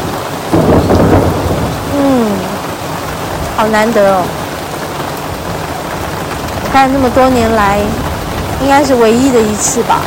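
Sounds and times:
heavy rain: 0:00.0 - 0:10.0
thunder: 0:00.0 - 0:10.0
speech: 0:03.6 - 0:04.4, 0:06.8 - 0:08.0, 0:08.6 - 0:10.0.

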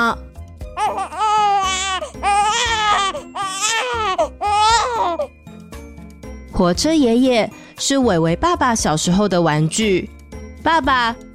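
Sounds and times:
speech: 0:00.1 - 0:01.2, 0:06.6 - 0:11.3
baby crying: 0:00.8 - 0:05.4.

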